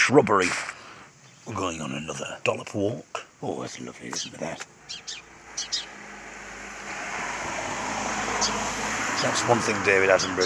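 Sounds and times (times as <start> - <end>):
speech: 0.1 - 0.8, 1.5 - 5.2, 8.4 - 10.4
bird chirps outdoors: 1.2 - 2.8, 3.4 - 7.1, 8.2 - 9.4
car passing outdoors: 3.9 - 10.4.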